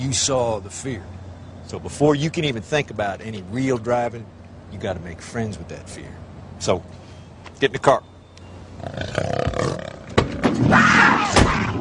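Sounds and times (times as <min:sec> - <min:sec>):
speech: 0:00.0 - 0:07.0, 0:07.6 - 0:08.1, 0:08.8 - 0:09.4
cougar roaring inside a car: 0:08.8 - 0:11.7.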